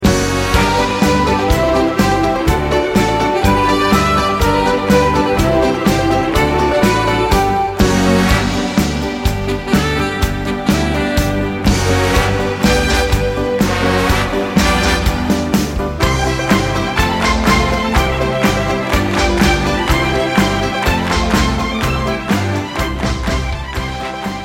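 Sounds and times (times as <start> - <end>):
country polka music: 0.0 - 24.4.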